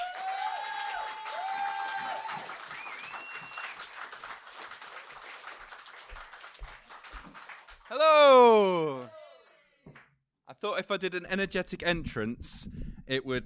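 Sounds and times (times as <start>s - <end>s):
audience round of applause: 0.0s - 9.1s
speech: 10.6s - 13.4s.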